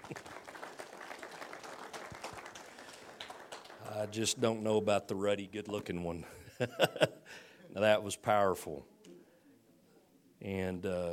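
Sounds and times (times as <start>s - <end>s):
audience applause: 0.0s - 4.2s
speech: 4.0s - 8.9s, 10.4s - 11.1s.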